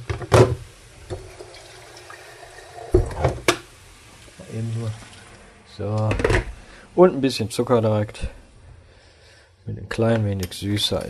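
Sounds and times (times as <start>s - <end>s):
liquid pouring into a cooking pot: 0.7s - 5.7s
speech: 4.6s - 5.2s, 5.8s - 6.4s, 7.0s - 8.4s, 9.7s - 11.0s.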